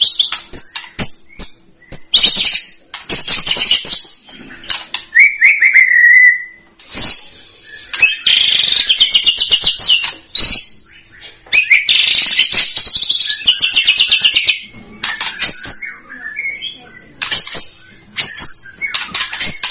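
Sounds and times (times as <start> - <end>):
White-rumped shama singing strongly: 0.0 - 19.6.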